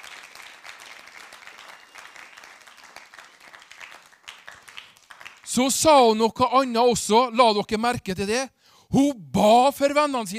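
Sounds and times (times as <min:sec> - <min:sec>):
audience applause: 0:00.0 - 0:05.5
speech: 0:05.5 - 0:10.3.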